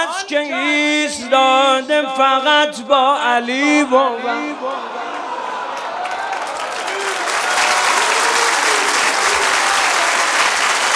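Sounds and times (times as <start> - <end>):
speech: 0.3 - 5.0
audience applause at a religious speech: 5.0 - 10.9.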